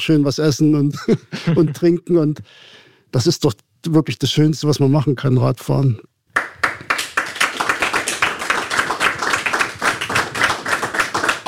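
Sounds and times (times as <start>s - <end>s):
speech: 0.0s - 6.6s
applause: 6.3s - 11.4s.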